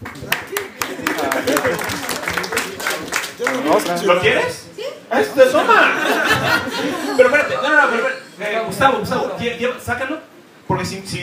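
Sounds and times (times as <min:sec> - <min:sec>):
applause: 0:00.0 - 0:04.1
laughter: 0:00.3 - 0:03.8, 0:05.2 - 0:08.4
speech: 0:03.7 - 0:11.2.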